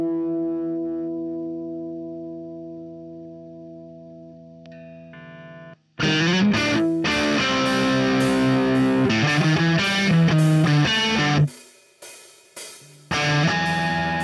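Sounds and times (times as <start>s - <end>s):
crunchy distorted guitars: 0.0s - 14.2s.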